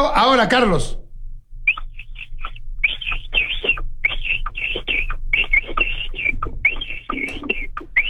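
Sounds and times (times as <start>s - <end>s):
speech: 0.0s - 1.0s
steady low hum: 0.0s - 8.0s
person imitating a capybara call by whistling: 1.7s - 8.0s.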